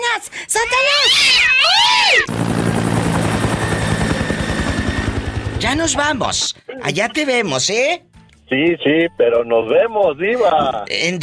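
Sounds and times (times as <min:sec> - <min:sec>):
speech: 0:00.2 - 0:01.5, 0:05.7 - 0:11.2
helicopter rotor chopping: 0:02.2 - 0:06.5.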